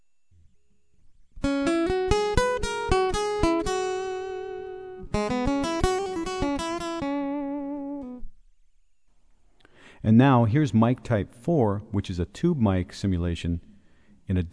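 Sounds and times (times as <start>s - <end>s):
acoustic guitar through a direct piezo pickup on a Yamaha AG Stomp: 1.4s - 8.3s
speech: 10.1s - 13.7s, 14.3s - 14.5s.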